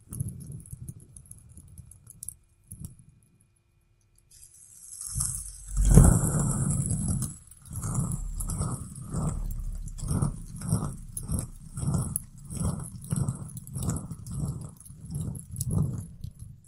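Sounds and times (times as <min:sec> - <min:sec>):
fidget spinner whirring: 0:04.3 - 0:16.6
steady rhythmic pulses: 0:05.4 - 0:14.6.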